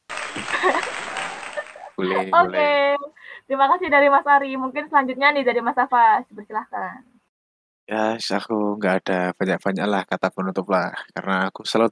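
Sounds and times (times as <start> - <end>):
applause sound effect: 0.0 - 2.3
laughter: 0.2 - 2.8
speech: 2.0 - 7.1, 7.9 - 11.9.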